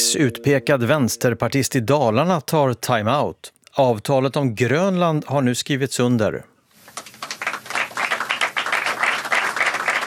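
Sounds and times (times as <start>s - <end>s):
speech: 0.1s - 7.1s
applause at UN headquarters: 6.9s - 10.0s.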